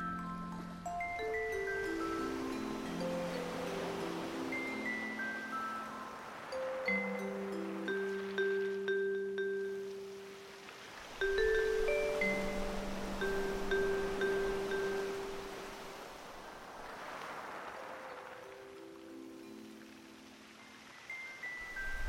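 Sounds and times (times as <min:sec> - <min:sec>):
bells ringing: 0:00.0 - 0:09.9, 0:11.2 - 0:15.5
waves: 0:00.0 - 0:22.0.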